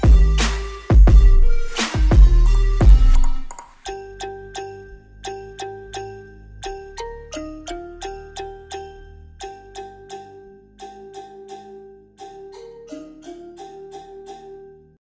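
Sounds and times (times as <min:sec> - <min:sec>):
trap remix with boosted bass: 0:00.0 - 0:04.0.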